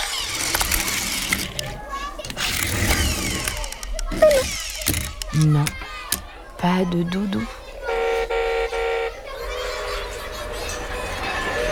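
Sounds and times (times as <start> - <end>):
small toy car engine revving: 0.0 - 6.2
voices murmuring: 3.1 - 11.7
speech: 5.4 - 5.8, 6.6 - 7.6.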